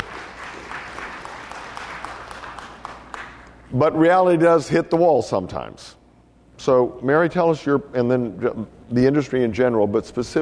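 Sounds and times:
audience applause: 0.0 - 3.4
speech: 3.7 - 6.0, 6.6 - 10.4.

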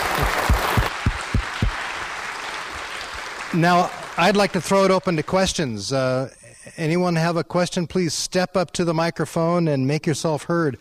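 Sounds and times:
audience applause: 0.0 - 5.6
speech: 3.6 - 10.7.

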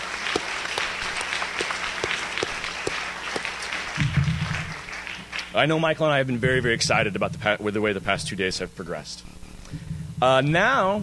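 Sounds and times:
audience applause: 0.0 - 5.7
speech: 5.6 - 11.0.

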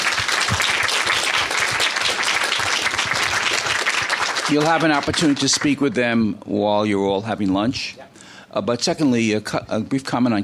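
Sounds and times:
audience applause: 0.0 - 5.8
speech: 4.5 - 10.4.

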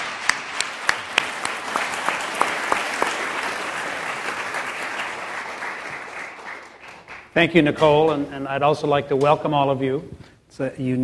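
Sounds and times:
audience applauding to welcome speakers at UC Davis: 0.0 - 7.6
speech: 7.4 - 11.0.

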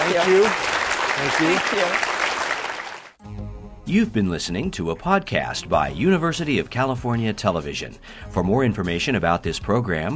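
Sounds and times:
audience applause: 0.0 - 3.2
speech: 0.1 - 2.1, 3.9 - 10.1.

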